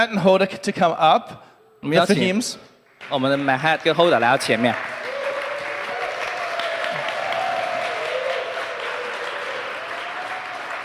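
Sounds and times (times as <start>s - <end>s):
speech: 0.0s - 5.1s
audience applauding: 2.8s - 10.8s.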